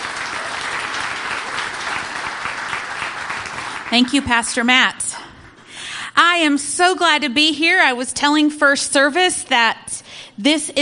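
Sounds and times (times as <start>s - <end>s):
audience applause welcoming a guest speaker at a church service: 0.0s - 4.3s
speech: 3.9s - 5.0s, 6.2s - 10.8s.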